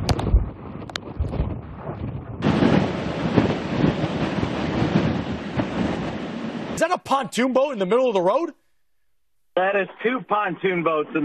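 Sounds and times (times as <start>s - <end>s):
gusts of hurricane wind: 0.0s - 6.8s
speech: 6.9s - 8.6s, 9.6s - 11.2s.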